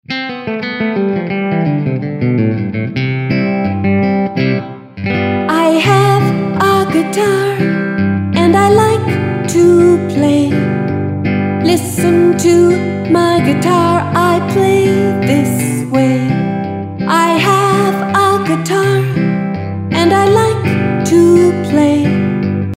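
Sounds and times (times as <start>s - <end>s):
guitar playing: 0.0s - 22.7s.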